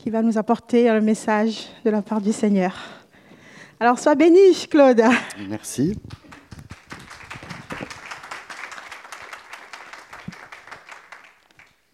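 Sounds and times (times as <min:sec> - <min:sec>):
speech: 0:00.0 - 0:03.0, 0:03.8 - 0:06.2
audience applause: 0:06.2 - 0:11.7.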